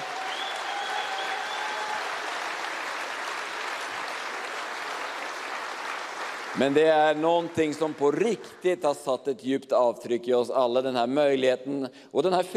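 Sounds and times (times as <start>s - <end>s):
audience applause: 0.0s - 8.8s
speech: 6.6s - 12.5s.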